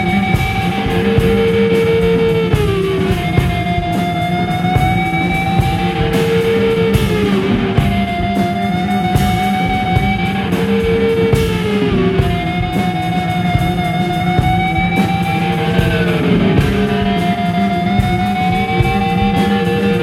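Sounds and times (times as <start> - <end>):
noisy vibrato riff: 0.0 - 20.0.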